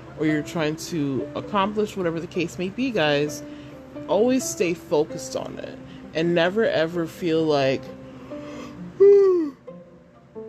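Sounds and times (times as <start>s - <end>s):
speech: 0.2s - 8.0s
person yawning: 8.5s - 9.7s.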